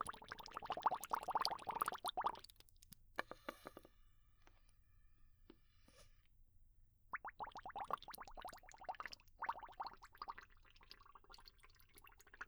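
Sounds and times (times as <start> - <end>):
bubbles: 0.0 - 2.5, 7.1 - 12.4.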